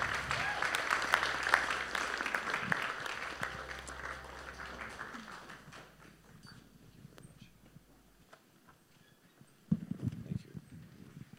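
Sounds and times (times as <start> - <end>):
audience applause welcoming a guest speaker: 0.0 - 6.5.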